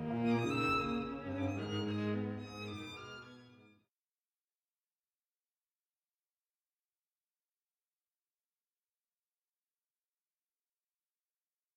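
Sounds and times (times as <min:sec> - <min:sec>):
classical trio movement: 0:00.0 - 0:03.5.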